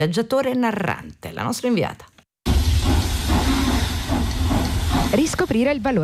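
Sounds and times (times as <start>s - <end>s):
speech: 0.0s - 2.1s, 5.1s - 6.0s
historic steam locomotive hauling three carriages on the Udine–Pordenone run: 2.5s - 6.0s
historic steam train rumble: 2.5s - 6.0s.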